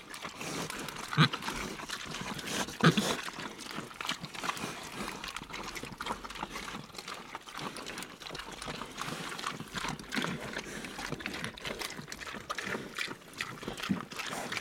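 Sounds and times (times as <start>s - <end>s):
pigs eating with wet crunching, munching and slurping: 0.0s - 14.5s.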